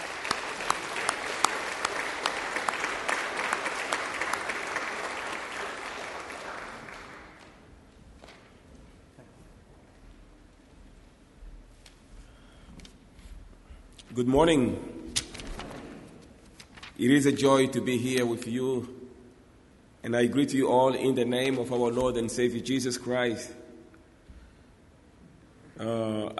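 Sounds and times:
church congregation applauding to welcome the bishop's representative in the sanctuary: 0:00.0 - 0:07.7
speech: 0:14.2 - 0:14.9, 0:17.0 - 0:18.9, 0:20.1 - 0:23.6, 0:25.8 - 0:26.3.

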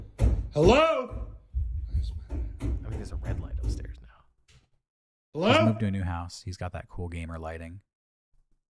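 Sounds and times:
footsteps: 0:00.2 - 0:04.6
speech: 0:00.6 - 0:01.1, 0:05.4 - 0:07.9.

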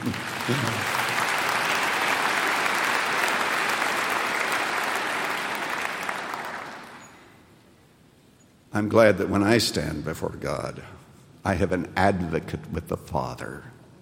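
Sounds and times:
speech: 0:00.0 - 0:01.0, 0:08.8 - 0:13.8
audience clapping: 0:00.0 - 0:07.3.

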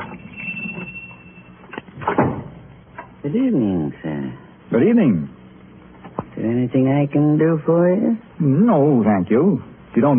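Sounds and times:
shop door opening: 0:00.0 - 0:03.2
small bell above a shop door ringing: 0:00.1 - 0:01.6
door thuds and rattle: 0:02.0 - 0:02.7
speech: 0:03.3 - 0:05.3, 0:06.4 - 0:10.1.

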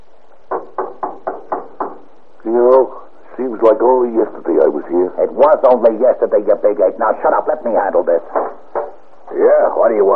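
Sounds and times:
knocking on a deluxe hotel suite door at the Sheraton: 0:00.5 - 0:02.1, 0:08.2 - 0:09.0
speech: 0:02.4 - 0:03.0, 0:03.6 - 0:08.5, 0:09.3 - 0:10.1.

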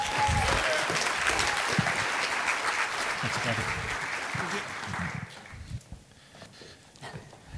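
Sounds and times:
audience applause welcoming two speakers at a testimony event: 0:00.0 - 0:05.8.

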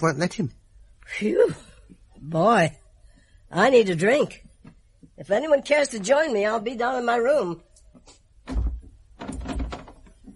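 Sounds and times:
speech: 0:00.0 - 0:02.8, 0:03.5 - 0:04.4, 0:05.2 - 0:08.2
trying a locked door: 0:08.5 - 0:10.2.

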